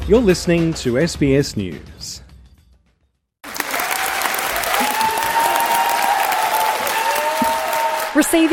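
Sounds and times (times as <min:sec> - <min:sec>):
speech: 0:00.1 - 0:02.2, 0:08.2 - 0:08.5
standing ovation in Parliament for an Independent MP's maiden speech: 0:03.5 - 0:08.5.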